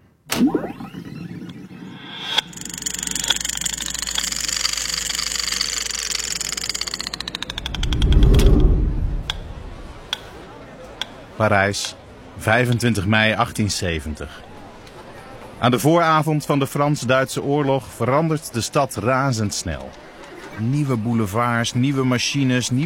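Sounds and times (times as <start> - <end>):
time machine mechanical whir with ticking: 1.5 - 10.2
time machine deep rumbling surge: 7.2 - 10.2
time machine start-up whoosh: 7.3 - 10.2
speech: 11.4 - 14.5, 15.6 - 20.0, 20.6 - 22.8.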